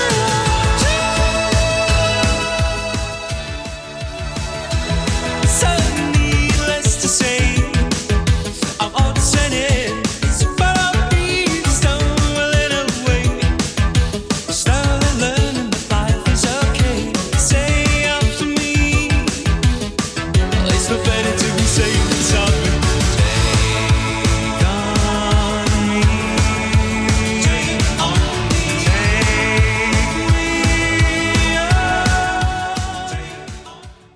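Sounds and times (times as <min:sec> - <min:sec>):
80s drum beat: 0:00.0 - 0:34.1.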